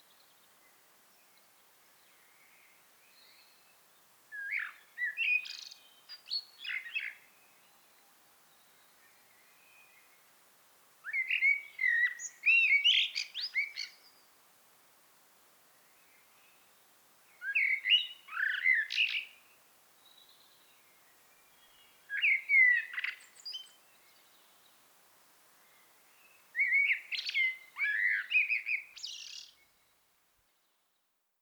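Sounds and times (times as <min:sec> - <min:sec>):
common blackbird singing: 0:04.3 - 0:07.9, 0:11.1 - 0:14.2, 0:17.4 - 0:19.4, 0:20.1 - 0:24.6, 0:26.2 - 0:29.9.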